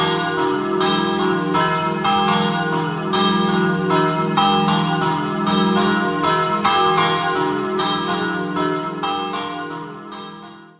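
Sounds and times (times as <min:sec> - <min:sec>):
bells ringing in Resiutta: 0:00.0 - 0:10.7.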